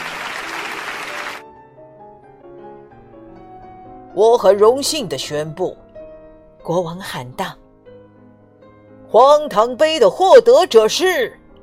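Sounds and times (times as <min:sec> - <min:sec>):
thunderous applause from a crowd: 0:00.0 - 0:01.4
speech: 0:04.2 - 0:05.8, 0:06.6 - 0:07.6, 0:09.1 - 0:11.4.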